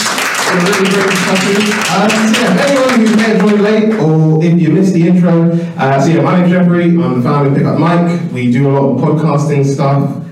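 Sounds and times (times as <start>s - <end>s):
round of applause at a networking event: 0.0s - 4.0s
speech: 0.5s - 10.2s.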